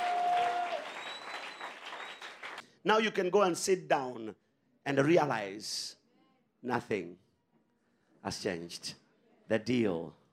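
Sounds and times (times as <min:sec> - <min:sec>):
church congregation clapping their hands: 0:00.0 - 0:02.7
speech: 0:02.8 - 0:06.0, 0:06.6 - 0:07.2, 0:08.2 - 0:10.2.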